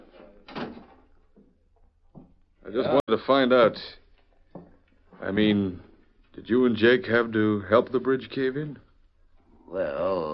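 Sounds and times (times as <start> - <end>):
door being shut on a work site: 0.1 - 1.0
speech: 2.7 - 4.0, 5.2 - 8.8, 9.7 - 10.3
faint knock: 4.5 - 4.8.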